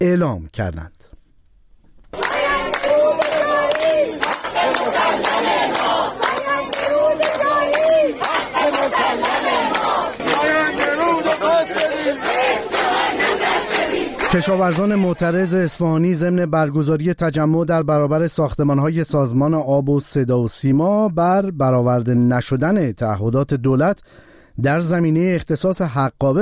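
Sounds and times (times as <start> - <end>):
speech: 0.0 - 1.0, 14.3 - 26.3
crowd chanting slogans in Isfahan: 2.1 - 15.7.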